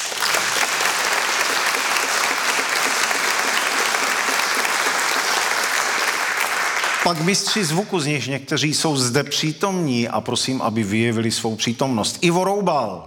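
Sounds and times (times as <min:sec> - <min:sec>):
audience applause: 0:00.0 - 0:07.8
speech: 0:07.1 - 0:13.0.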